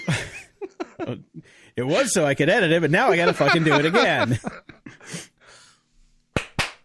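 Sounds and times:
laughter: 0.0s - 1.4s, 2.8s - 5.0s
speech: 1.0s - 5.3s
sharp hand claps as a recording sync marker: 6.3s - 6.8s.

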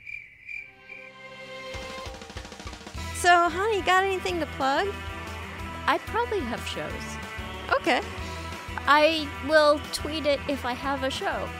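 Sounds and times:
crickets chirping: 0.0s - 1.1s
speech: 3.2s - 5.1s, 5.9s - 7.2s, 7.8s - 11.5s.

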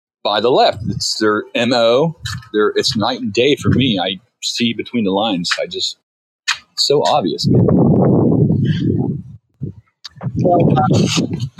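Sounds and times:
speech: 0.2s - 6.0s, 6.8s - 7.8s, 10.5s - 11.5s
wind noise over a caller's line: 0.4s - 4.2s, 6.5s - 11.5s.

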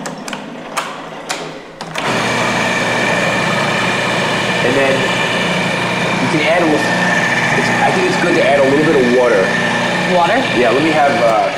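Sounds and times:
food processor blending a dip: 1.8s - 11.5s
speech: 4.7s - 5.2s, 6.3s - 7.0s, 7.6s - 11.5s.

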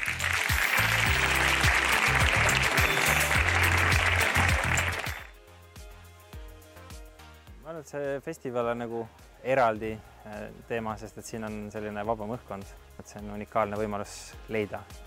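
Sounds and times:
crowd applause: 0.0s - 5.3s
speech: 7.9s - 15.0s.

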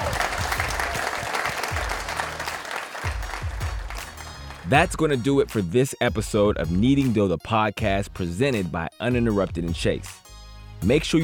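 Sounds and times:
crowd applauding: 0.0s - 4.9s
speech: 4.7s - 10.2s, 10.8s - 11.2s.

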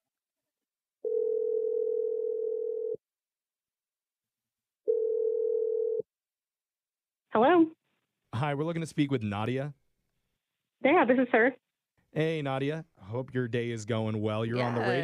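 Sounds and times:
long steady telephone tones: 1.0s - 3.0s, 4.8s - 6.0s
speech: 8.4s - 9.8s, 10.8s - 15.0s.

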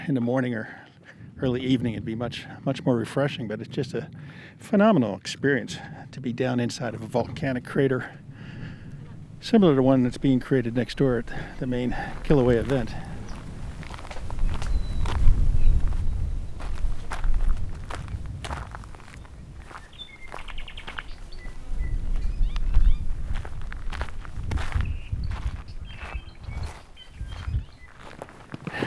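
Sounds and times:
speech: 0.1s - 8.2s, 9.4s - 13.1s
footsteps hiking across volcanic crater floor: 6.8s - 28.8s
low rumble of wind or movement: 7.0s - 27.8s.

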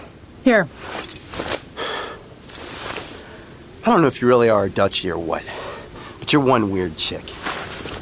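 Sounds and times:
speech: 0.5s - 1.2s, 3.9s - 5.6s, 6.3s - 7.4s
car keys jangling as handed over: 2.5s - 2.9s.

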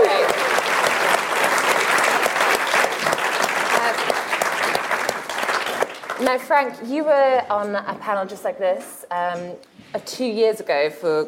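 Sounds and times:
live audience cheering and shouting at the Tory Party Conference: 0.0s - 0.5s
live audience applause at the Tory Party Conference: 0.0s - 6.4s
speech: 6.3s - 11.2s.

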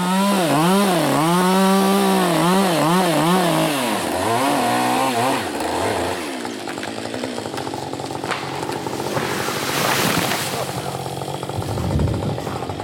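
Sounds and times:
chainsaw felling a tree: 0.0s - 12.8s
tree crackling as it gives way: 2.8s - 12.8s.

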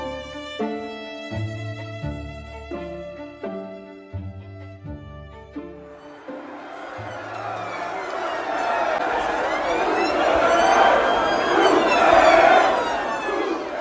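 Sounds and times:
young revellers chanting in protest in Liverpool city centre streets: 6.0s - 13.7s.

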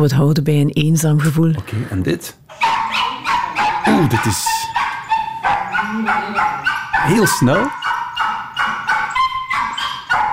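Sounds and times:
speech: 0.0s - 2.6s, 3.8s - 4.8s, 5.9s - 7.8s
overexcited dog yipping and whining: 2.5s - 10.3s.

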